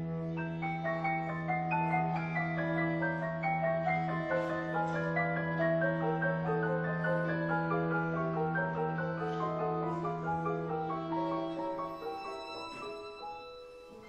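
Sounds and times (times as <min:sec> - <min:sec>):
music piece: 0:00.0 - 0:14.0.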